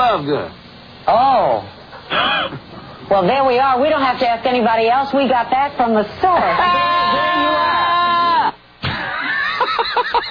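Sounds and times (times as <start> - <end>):
speech: 0.2 - 1.7, 2.5 - 7.8
man's non sequitur yell in a played recording: 6.6 - 8.6
laughter: 9.0 - 10.2.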